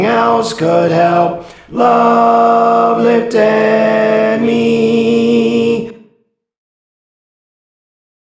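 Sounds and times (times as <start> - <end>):
tenor singing: 0.0 - 6.0.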